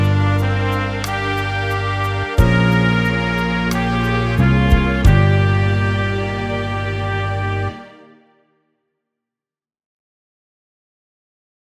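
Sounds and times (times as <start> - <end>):
trumpet melody: 0.0 - 8.4.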